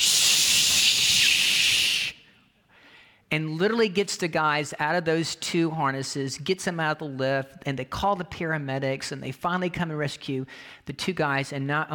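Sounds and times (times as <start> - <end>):
fire extinguisher blast of hissing spray: 0.0 - 2.2
speech: 3.3 - 11.9.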